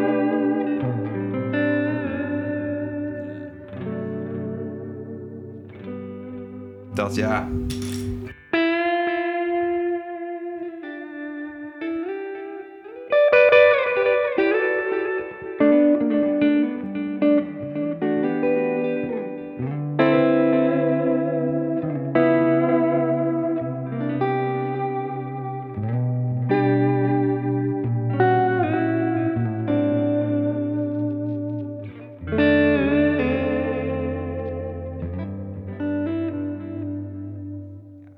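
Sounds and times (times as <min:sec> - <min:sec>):
electric guitar played through effects: 0:00.0 - 0:38.1
speech: 0:07.0 - 0:08.0.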